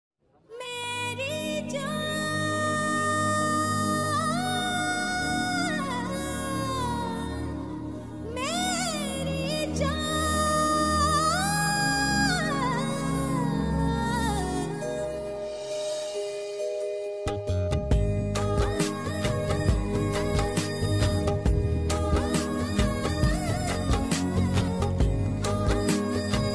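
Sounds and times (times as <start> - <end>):
background music: 0.5 - 26.5.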